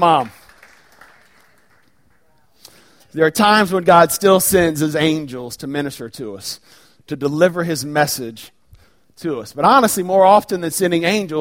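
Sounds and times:
speech: 0:00.0 - 0:00.4, 0:03.1 - 0:08.6, 0:09.2 - 0:11.3
audience clapping: 0:00.0 - 0:02.6.

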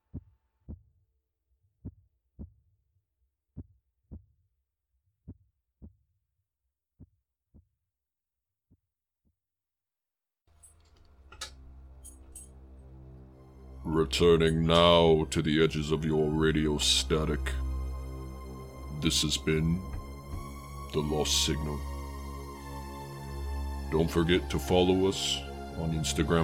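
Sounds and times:
heart beating: 0:00.1 - 0:01.0, 0:01.8 - 0:02.6, 0:19.8 - 0:20.6
speech: 0:13.9 - 0:17.6, 0:19.0 - 0:20.0, 0:20.9 - 0:21.9, 0:23.9 - 0:26.4.

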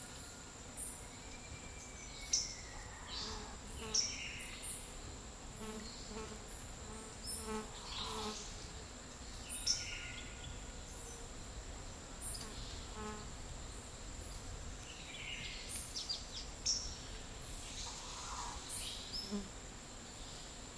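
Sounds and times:
high insect whine in a Costa Rican dry forest: 0:00.0 - 0:20.7.

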